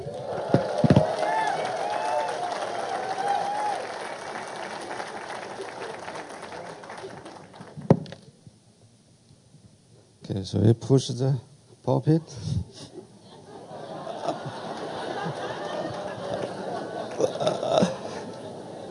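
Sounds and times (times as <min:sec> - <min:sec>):
audience clapping to welcome a pastor: 0:00.0 - 0:07.9, 0:14.0 - 0:18.9
speech: 0:10.5 - 0:12.9
laughter: 0:12.3 - 0:18.9.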